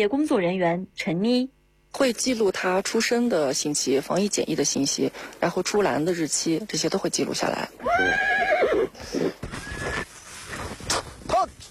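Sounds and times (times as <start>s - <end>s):
speech: 0.0s - 9.4s
horses neighing while herding sheep: 7.8s - 10.0s
rustling: 9.0s - 11.6s.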